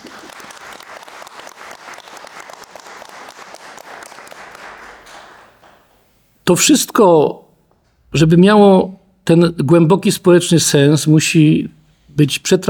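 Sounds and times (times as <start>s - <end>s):
audience applause: 0.0s - 5.9s
speech: 6.5s - 7.4s, 8.1s - 12.6s.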